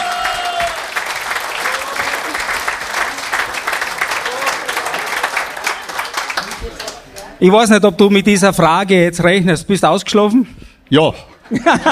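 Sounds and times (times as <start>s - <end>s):
audience applause: 0.0s - 7.3s
speech: 7.4s - 11.9s
laughter: 11.4s - 11.9s.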